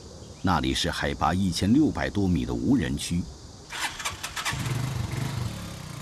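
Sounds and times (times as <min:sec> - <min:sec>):
speech: 0:00.4 - 0:03.4
motorcycle engine starting and idling: 0:03.7 - 0:06.0.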